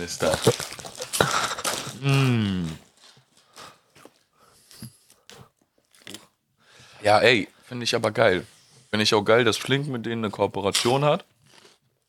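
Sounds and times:
speech: 0.0s - 0.7s, 2.0s - 2.8s, 7.0s - 11.3s
popcorn crackling in a bag: 0.0s - 3.7s
quiet mouth sounds: 1.1s - 3.0s.

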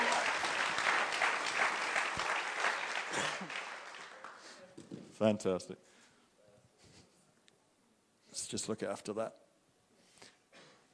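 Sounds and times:
church congregation applauding during a bilingual service: 0.0s - 4.8s
speech: 5.2s - 5.9s, 8.5s - 9.4s.

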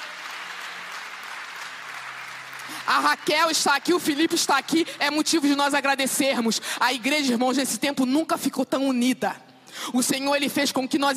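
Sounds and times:
audience applauding: 0.0s - 5.3s
speech: 2.7s - 11.1s.

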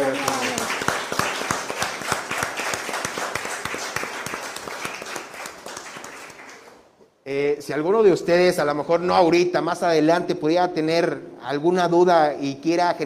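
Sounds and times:
audience applause: 0.0s - 6.8s
speech: 7.7s - 13.0s.

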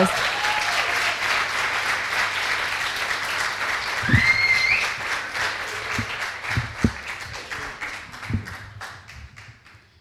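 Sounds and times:
audience applause: 0.0s - 9.9s
brief whistle-like tone: 4.0s - 5.0s.

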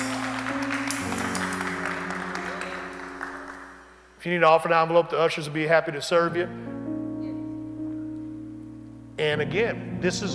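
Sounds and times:
audience hand clapping: 0.0s - 4.1s
sustained organ chords: 0.0s - 10.3s
speech: 4.2s - 6.7s, 9.2s - 10.3s.

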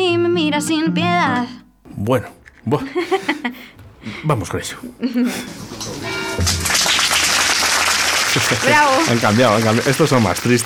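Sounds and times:
speech: 0.5s - 6.8s, 8.4s - 10.6s
laughter: 2.7s - 3.8s
audience applause: 5.6s - 10.6s.

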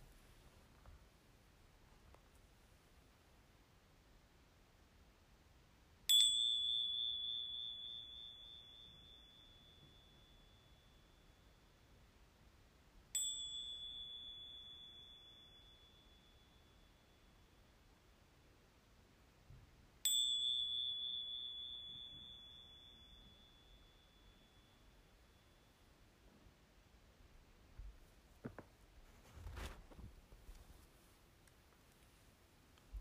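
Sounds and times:
small meditation bell ringing: 6.1s - 18.6s, 19.4s - 26.5s.

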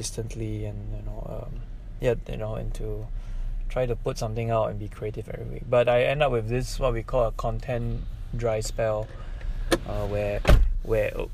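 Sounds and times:
speech: 0.0s - 11.3s
door closing thud: 9.7s - 10.8s.

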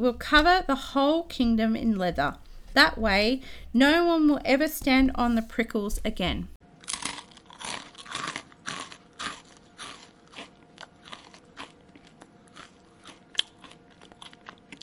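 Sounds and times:
speech: 0.0s - 6.6s
loud wet chewing and crunching of chicken: 6.8s - 14.8s.

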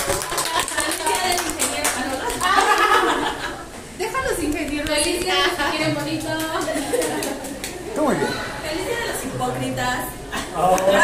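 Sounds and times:
crowd clapping: 0.0s - 3.2s, 6.0s - 7.9s
chattering voices: 0.0s - 11.0s
laughter: 2.2s - 3.7s, 6.6s - 7.8s, 10.4s - 11.0s
speech: 9.4s - 11.0s.

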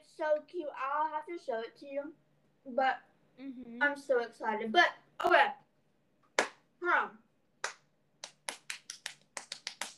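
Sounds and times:
speech: 0.2s - 5.6s, 6.8s - 7.2s
crisp hand claps from one or two people: 6.3s - 6.6s, 7.6s - 9.9s.

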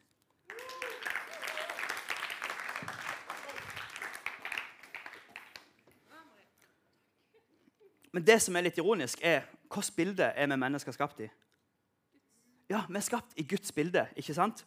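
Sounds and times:
audience applause: 0.4s - 5.8s
speech: 8.2s - 11.4s, 12.7s - 14.6s.

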